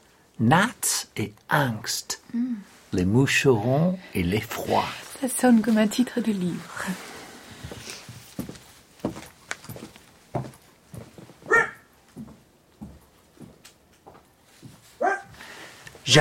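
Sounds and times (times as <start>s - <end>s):
speech: 0.4s - 7.1s
dog barking and yelping: 11.5s - 11.9s, 15.0s - 15.3s.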